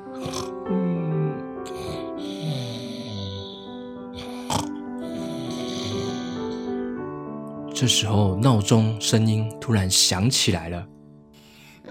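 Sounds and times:
pig snoring in its sleep: 0:00.0 - 0:06.7
speech: 0:07.8 - 0:11.0.

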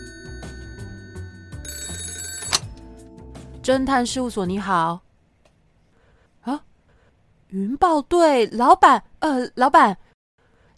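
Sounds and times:
telephone ringing: 0:00.0 - 0:03.0
speech: 0:03.6 - 0:05.0, 0:06.4 - 0:06.6, 0:07.5 - 0:10.0.

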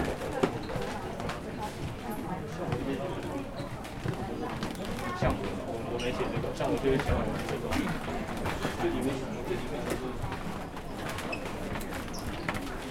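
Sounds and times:
murmur of many voices on the second floor of a bookshop: 0:00.0 - 0:12.8.

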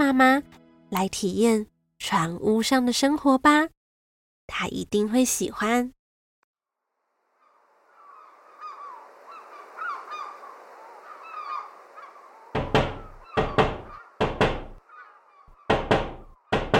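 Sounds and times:
speech: 0:00.1 - 0:03.8, 0:04.5 - 0:06.0
young swans honking: 0:07.4 - 0:16.5
young swans knocking against a window: 0:12.6 - 0:14.8, 0:15.6 - 0:16.7.

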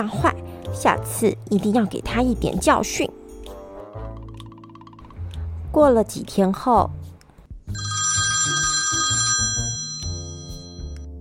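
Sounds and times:
speech: 0:00.0 - 0:03.2, 0:05.8 - 0:07.0
telephone ringing: 0:07.7 - 0:11.0.

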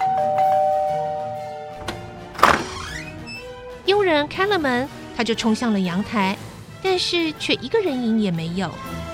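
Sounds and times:
electronic doorbell tone: 0:00.0 - 0:01.8
thunk and rattling clatter: 0:01.8 - 0:03.0
speech: 0:04.1 - 0:09.0.

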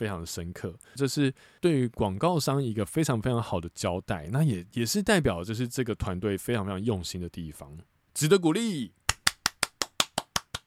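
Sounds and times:
speech: 0:00.0 - 0:09.0
one person clapping hands: 0:09.1 - 0:10.6.

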